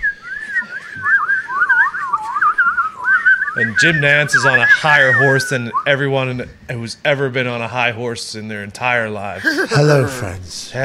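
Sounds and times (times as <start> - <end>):
whistled imitation of birdsong: 0.0 - 5.5
speech: 3.6 - 10.8
laughter: 9.4 - 10.6.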